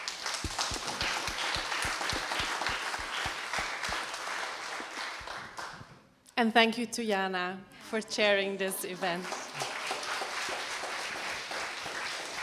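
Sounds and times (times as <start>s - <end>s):
audience applause: 0.0s - 5.8s, 9.0s - 12.4s
speech: 6.4s - 9.4s.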